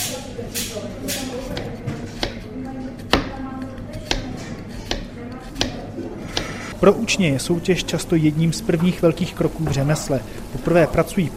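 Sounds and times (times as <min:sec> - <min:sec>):
knife finely chopping onion on a cutting board: 0:00.0 - 0:06.6
low murmur: 0:00.0 - 0:11.3
speech: 0:06.8 - 0:11.3.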